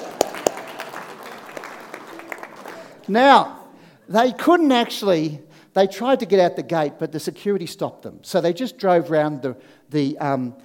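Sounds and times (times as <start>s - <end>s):
audience clapping: 0.0s - 3.1s
speech: 3.1s - 10.6s.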